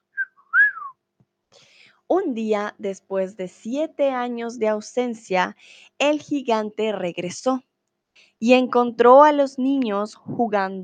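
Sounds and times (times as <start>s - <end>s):
person whistling birdsong imitation: 0.1s - 1.0s
speech: 2.1s - 7.7s, 8.4s - 10.8s.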